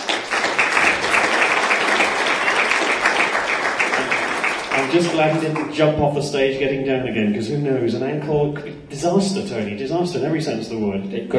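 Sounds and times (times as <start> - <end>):
audience round of applause: 0.0 - 6.0
speech: 4.9 - 11.3.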